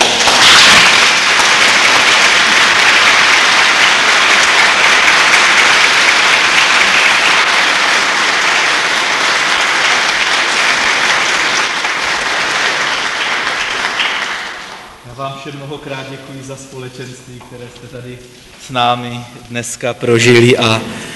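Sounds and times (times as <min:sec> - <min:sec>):
applause: 0:00.0 - 0:15.1
speech: 0:15.4 - 0:21.0.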